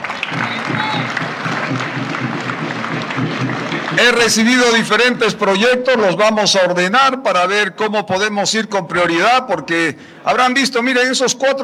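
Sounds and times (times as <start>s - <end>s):
audience applause: 0.0s - 5.4s
speech: 4.0s - 11.6s.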